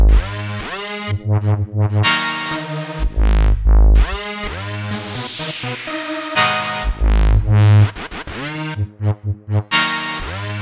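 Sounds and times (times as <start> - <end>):
complex electro synth music in G sharp minor: 0.1 - 1.2, 2.0 - 3.3, 4.0 - 8.8, 9.7 - 10.6.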